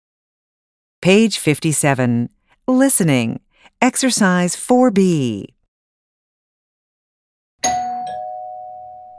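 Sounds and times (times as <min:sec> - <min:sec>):
speech: 0:01.0 - 0:05.6
two-tone doorbell chime: 0:07.6 - 0:09.1.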